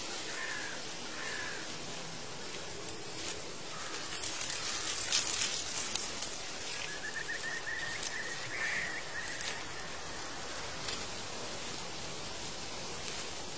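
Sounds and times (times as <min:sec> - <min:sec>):
airy hiss: 0:00.0 - 0:13.5
falling leaves rustling: 0:00.0 - 0:13.5
drawn-out bird calls: 0:03.6 - 0:10.7.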